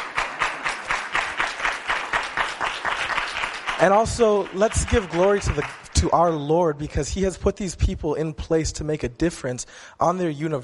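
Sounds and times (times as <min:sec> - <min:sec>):
audience applause: 0:00.0 - 0:06.1
speech: 0:03.8 - 0:10.6.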